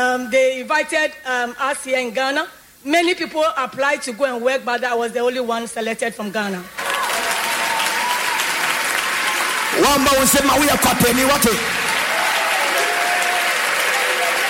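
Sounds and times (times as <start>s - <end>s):
speech: 0.0s - 6.8s, 9.8s - 11.8s
crowd clapping: 6.8s - 14.4s.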